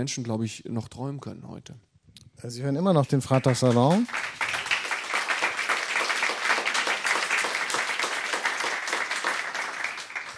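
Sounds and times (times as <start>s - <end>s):
speech: 0.0s - 4.4s
audience applause: 3.3s - 10.3s.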